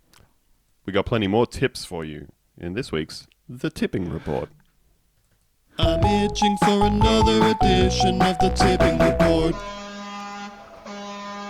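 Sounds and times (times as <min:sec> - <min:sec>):
speech: 0:00.9 - 0:04.6, 0:05.8 - 0:09.8
loud brassy vehicle horn honking: 0:09.6 - 0:11.4.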